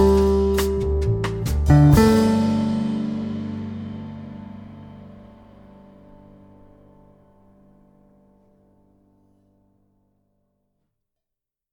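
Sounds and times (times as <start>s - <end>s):
rhythm guitar: 0.0s - 5.8s.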